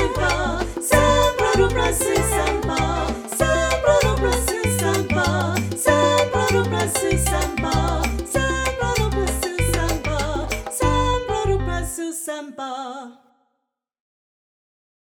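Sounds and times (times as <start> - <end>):
chill samba music: 0.0 - 11.9.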